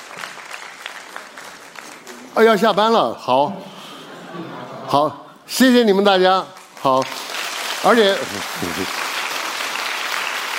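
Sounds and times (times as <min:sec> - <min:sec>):
audience applause: 0:00.0 - 0:02.8, 0:06.6 - 0:10.5
speech: 0:02.4 - 0:07.2, 0:07.8 - 0:09.0
laughter: 0:03.4 - 0:05.4, 0:08.3 - 0:08.9.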